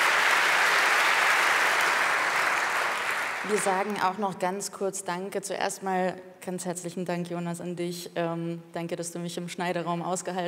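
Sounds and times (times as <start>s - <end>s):
audience applause: 0.0s - 4.0s
speech: 3.4s - 10.4s.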